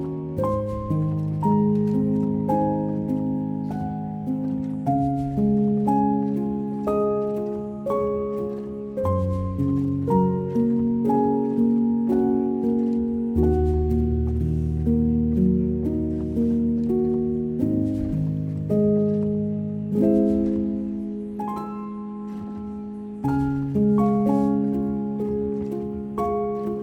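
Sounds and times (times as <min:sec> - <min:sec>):
relaxing piano music: 0:00.0 - 0:26.8.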